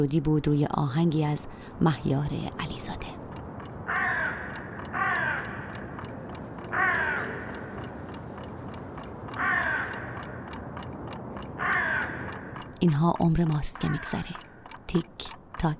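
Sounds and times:
speech: 0.0 - 3.2, 12.8 - 15.7
crows cawing at dawn: 3.8 - 10.8, 11.4 - 12.7, 13.8 - 14.7.

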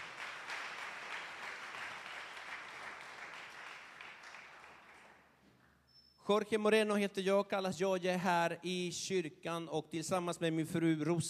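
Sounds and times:
audience applause: 0.0 - 5.2
speech: 6.3 - 11.2.

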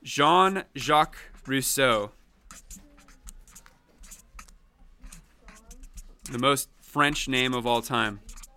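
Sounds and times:
speech: 0.1 - 2.8, 6.3 - 8.3
pen writing a name on paper: 0.5 - 8.5.

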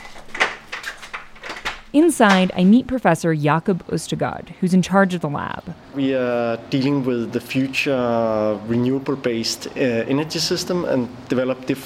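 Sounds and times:
door scraping and creaking: 0.0 - 2.8
speech: 1.9 - 11.8.

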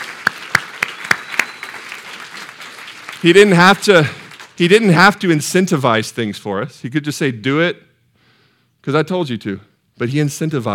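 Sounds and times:
audience clapping applause: 0.0 - 4.6
speech: 3.2 - 7.9, 8.8 - 10.7.

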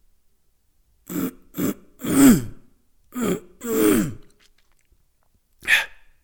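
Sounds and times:
rough raspy throat clearing: 1.1 - 2.6, 3.2 - 4.4.

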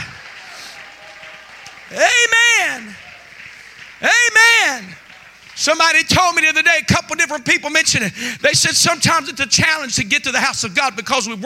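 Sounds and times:
audience shouting hallelujah: 0.0 - 5.3
audience clapping hands: 0.0 - 7.5
speech: 4.0 - 5.0, 5.6 - 11.4.

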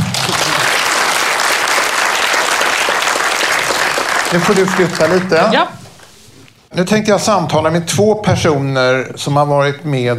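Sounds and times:
audience applause: 0.0 - 5.7
speech: 4.3 - 5.8, 6.7 - 10.1.

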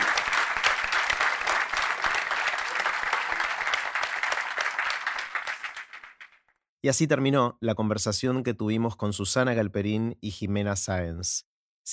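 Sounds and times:
applause: 0.0 - 6.6
speech: 6.8 - 11.9.

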